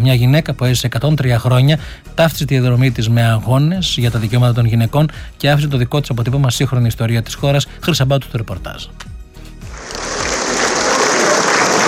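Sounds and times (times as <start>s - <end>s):
speech: 0.0s - 9.1s
prolonged applause at a funeral: 9.7s - 11.8s.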